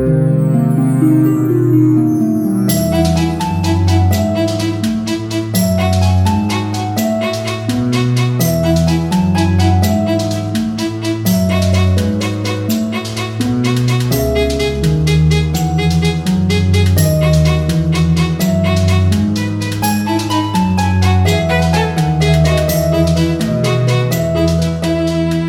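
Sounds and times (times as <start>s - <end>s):
fairy tale music: 0.0s - 25.4s.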